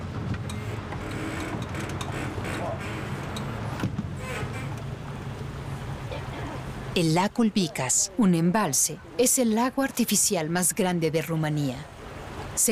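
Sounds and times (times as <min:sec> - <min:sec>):
motorboat engine on a lake: 0:00.0 - 0:09.2
speech: 0:07.0 - 0:11.9.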